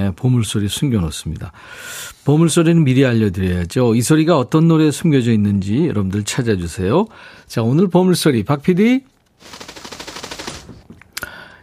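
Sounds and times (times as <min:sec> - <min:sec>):
speech: 0:00.0 - 0:09.7
bird wings flapping: 0:09.4 - 0:10.9.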